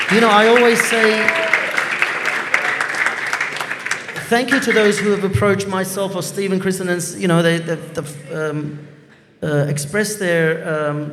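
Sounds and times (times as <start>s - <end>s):
audience applause: 0.0s - 5.7s
speech: 0.1s - 1.6s, 4.3s - 11.1s.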